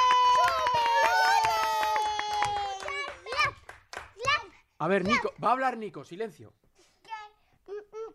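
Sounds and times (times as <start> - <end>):
children applauding: 0.0 - 4.2
speech: 4.8 - 6.6.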